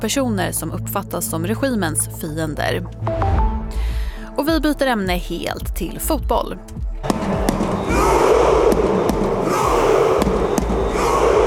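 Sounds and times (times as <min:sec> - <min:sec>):
speech: 0:00.0 - 0:03.4, 0:04.4 - 0:08.1
sharp claps and bangs: 0:07.0 - 0:11.0
Norwegian football fans cheering after World Cup win over Senegal: 0:07.1 - 0:11.4.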